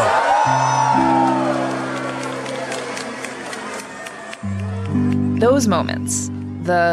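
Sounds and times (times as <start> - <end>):
crowd exclaiming whoa at tree lighting: 0.0 - 5.0
crowd cheering and whooping: 0.0 - 6.9
low sustained musical tones: 0.1 - 6.9
speech: 5.4 - 6.9.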